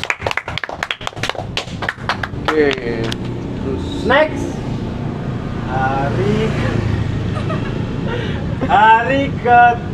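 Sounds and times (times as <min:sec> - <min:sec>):
audience clapping: 0:00.0 - 0:03.2
speech: 0:02.5 - 0:04.6, 0:05.7 - 0:06.9, 0:07.5 - 0:09.9.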